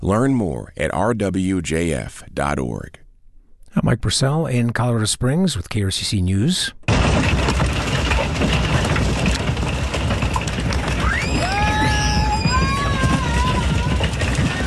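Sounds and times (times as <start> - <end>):
speech: 0.0 - 3.0, 3.7 - 8.8
hail falling in Colorado Springs: 6.9 - 14.6.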